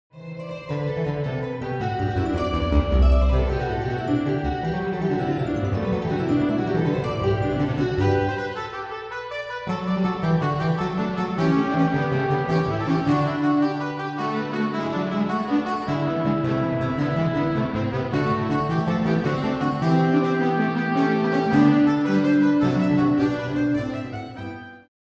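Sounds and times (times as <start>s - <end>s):
fugue in G: 0.4s - 24.8s.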